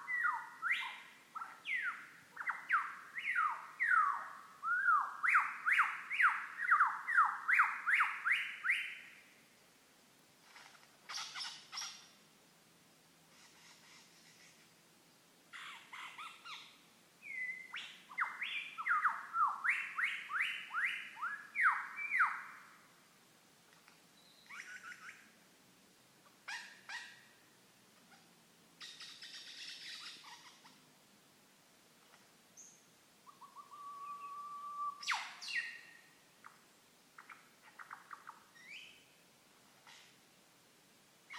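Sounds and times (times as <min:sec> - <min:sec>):
lyrebird: 0:00.0 - 0:09.2, 0:10.4 - 0:12.2, 0:13.3 - 0:14.7, 0:15.5 - 0:22.7, 0:24.3 - 0:25.3, 0:26.2 - 0:27.3, 0:28.0 - 0:30.9, 0:32.0 - 0:39.1, 0:39.7 - 0:40.2.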